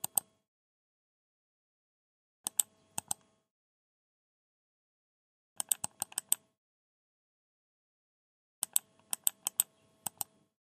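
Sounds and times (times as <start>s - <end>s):
computer mouse clicks: 0.0s - 0.3s, 2.4s - 3.3s, 5.6s - 6.4s, 8.6s - 10.4s.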